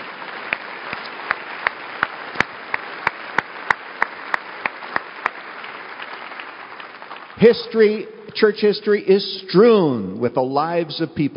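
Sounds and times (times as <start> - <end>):
audience clapping: 0.0 - 8.5
speech: 7.4 - 11.3.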